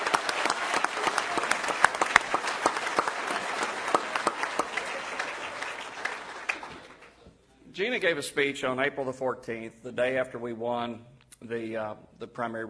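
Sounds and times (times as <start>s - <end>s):
audience applause: 0.0s - 7.2s
speech: 7.8s - 12.6s.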